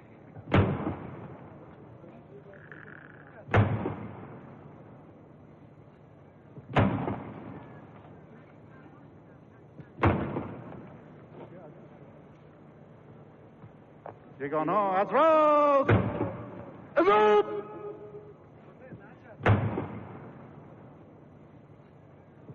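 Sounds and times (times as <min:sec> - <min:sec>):
ceremonial cannon salute shots: 0:00.5 - 0:01.6, 0:03.5 - 0:04.8, 0:06.7 - 0:07.7, 0:10.0 - 0:10.8, 0:15.0 - 0:18.0, 0:19.4 - 0:20.7
speech: 0:14.4 - 0:16.1, 0:17.0 - 0:17.4.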